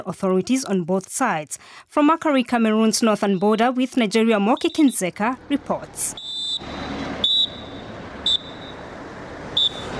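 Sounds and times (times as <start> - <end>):
speech: 0.0 - 6.9
Cameroon troops blowing whistles to signal departure: 4.5 - 5.0, 6.2 - 8.8, 9.5 - 9.9.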